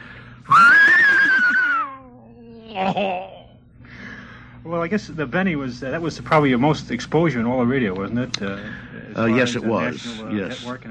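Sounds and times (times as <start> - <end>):
man imitating an English horse whinny: 0.5 - 2.0
speech: 2.8 - 3.3, 4.6 - 10.9.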